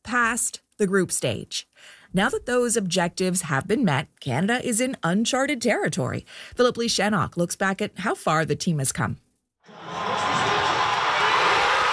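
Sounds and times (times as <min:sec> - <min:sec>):
speech: 0:00.3 - 0:10.0
crowd cheering at a Toronto watch party for Canada versus South Africa soccer match: 0:09.7 - 0:11.9.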